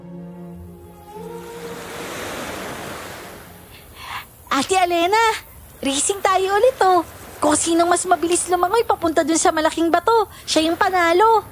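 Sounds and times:
faint low tonal hum: 0.0s - 4.1s
ocean waves on the shore: 0.5s - 11.5s
speech: 4.6s - 11.5s.

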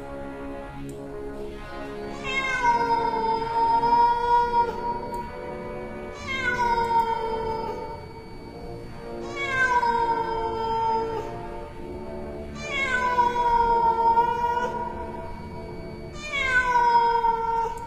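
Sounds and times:
cat yowling springing out of grass: 2.2s - 5.0s, 6.2s - 8.1s, 9.2s - 11.3s, 12.6s - 15.3s, 16.0s - 17.8s.

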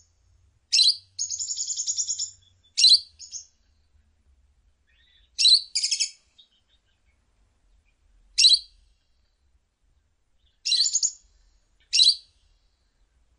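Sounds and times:
lovebird chirping: 0.7s - 3.6s, 4.8s - 8.8s, 10.4s - 12.7s.

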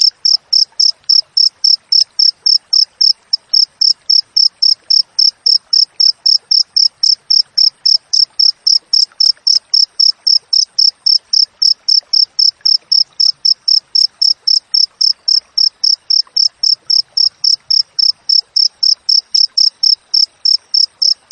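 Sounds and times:
cricket chirping: 0.0s - 21.3s.

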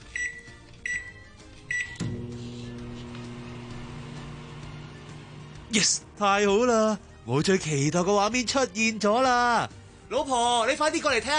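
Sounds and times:
microwave keypad beeps: 0.2s - 2.0s
microwave oven click: 1.7s - 2.3s
microwave oven in a kitchen humming, heating a boxed meal: 1.8s - 5.7s
speech: 5.7s - 11.3s.

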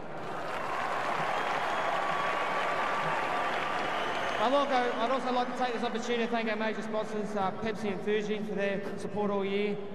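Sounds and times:
audience applauding: 0.0s - 5.4s
speech: 4.4s - 9.9s.

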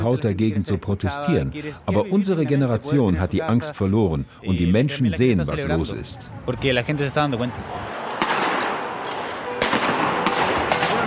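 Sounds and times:
speech: 0.0s - 8.0s
tear gas grenade exploding nearby: 8.1s - 11.0s.

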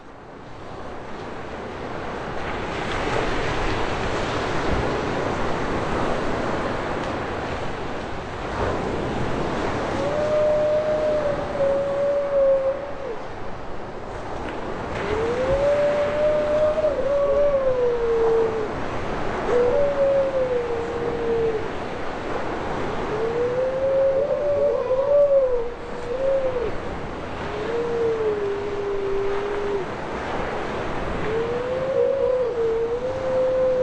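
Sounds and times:
ocean surf breaking on a beach in Norfolk England: 0.0s - 33.8s
wind rumble on a beach in Norfolk England: 1.7s - 33.8s
grey seals calling on a beach in Norfolk England: 9.9s - 13.2s, 15.0s - 21.9s, 22.8s - 30.0s, 31.1s - 33.8s.

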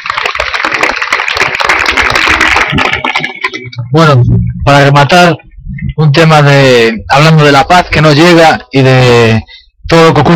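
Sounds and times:
audience applause: 0.0s - 3.7s
speech: 3.9s - 10.3s.

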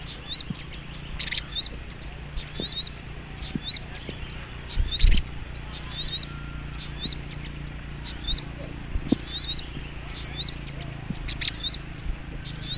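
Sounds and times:
faint hum: 0.0s - 12.7s
little spiderhunter chip calls: 0.0s - 12.7s
low thuds: 0.0s - 12.7s.

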